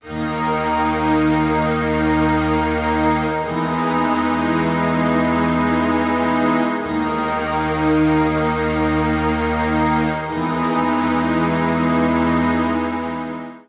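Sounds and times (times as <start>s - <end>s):
strings: 0.0s - 13.6s.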